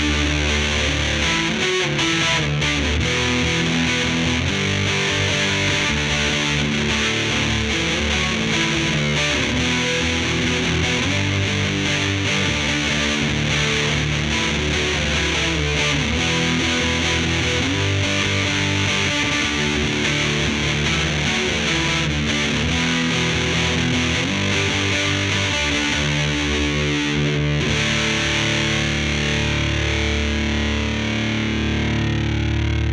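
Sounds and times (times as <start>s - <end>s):
electric guitar through an overdrive pedal playing chords: 0.0s - 32.9s.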